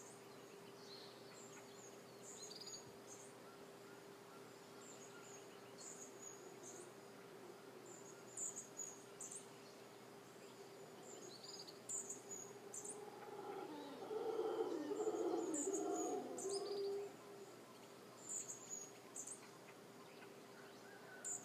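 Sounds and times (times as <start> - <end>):
howler monkey roaring and moaning: 12.5 - 17.5.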